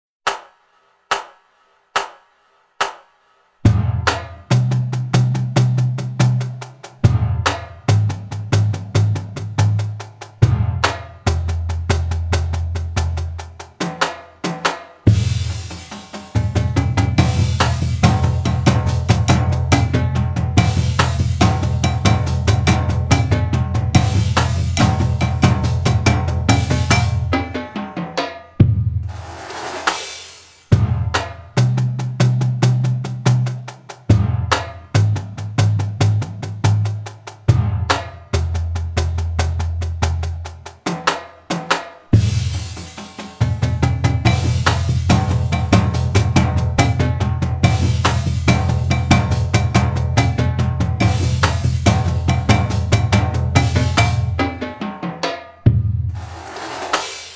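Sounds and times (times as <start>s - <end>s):
junior drumline playing: 3.7s - 57.3s.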